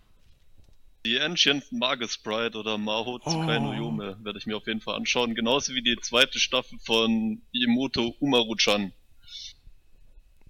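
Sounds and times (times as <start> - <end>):
speech: 1.2 - 9.5
person sneezing: 3.2 - 4.2.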